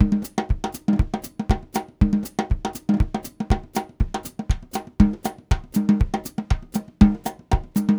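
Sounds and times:
Latin percussion groove: 0.0 - 7.9.

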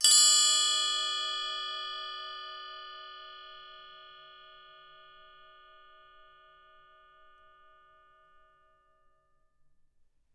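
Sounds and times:
LG TRI left percussion: 0.0 - 9.6.

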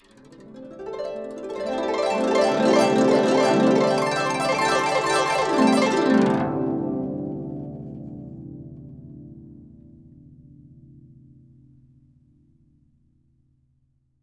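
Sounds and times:
guqin plucked: 0.0 - 9.8.

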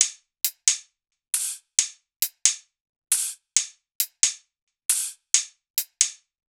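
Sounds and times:
hi-hat loop: 1.4 - 2.5, 3.1 - 6.2.

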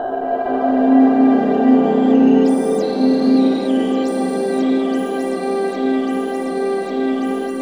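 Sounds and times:
ethereal ambient atmosphere: 0.0 - 7.6.

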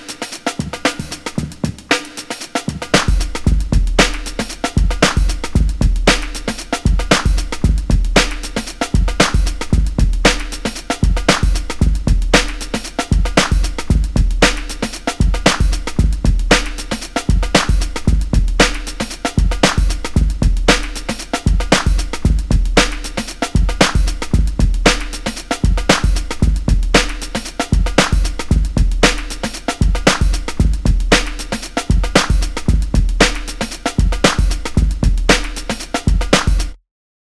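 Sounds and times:
funky bassy breakbeat at 115 BPM: 0.6 - 36.8.

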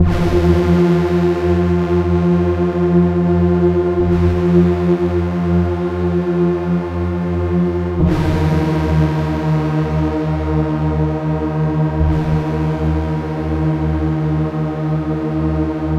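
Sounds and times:
trance synth pad: 0.0 - 15.9.

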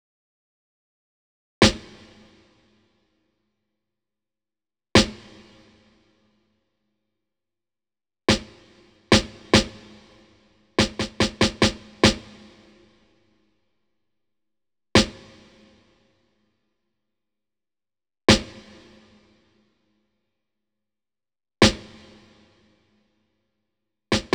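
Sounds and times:
snare drum: 8.3 - 10.0, 10.8 - 12.6, 15.0 - 15.3, 24.1 - 24.3
smooth RnB drum track: 9.1 - 9.9, 10.8 - 12.3, 24.1 - 24.3.

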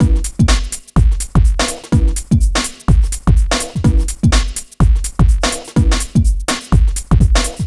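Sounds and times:
lounge house music loop: 0.0 - 7.6.

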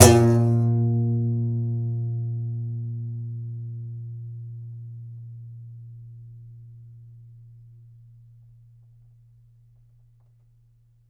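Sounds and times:
contrabass balalaika plucked: 0.0 - 3.2.

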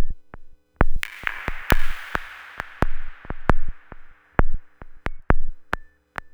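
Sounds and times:
modular electronica music: 0.9 - 5.7.

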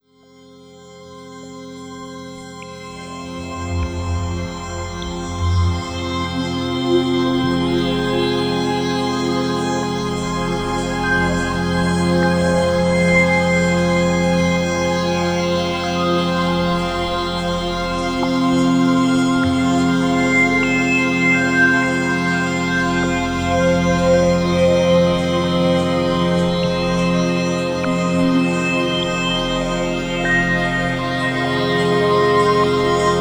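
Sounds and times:
sustained atmospheric chords: 1.6 - 33.1.

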